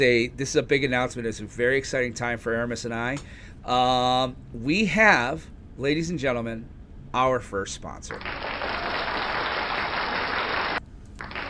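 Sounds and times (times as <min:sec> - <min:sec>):
speech: 0:00.0 - 0:08.5
loud clapping: 0:08.1 - 0:11.4.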